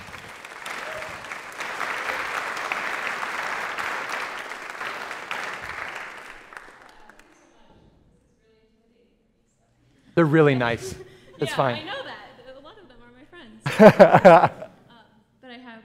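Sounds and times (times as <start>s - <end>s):
audience applause welcoming a student speaker at a church talk: 0.0s - 7.4s
speech: 10.2s - 12.0s, 13.8s - 14.6s
laughter: 10.2s - 12.2s, 13.6s - 14.8s.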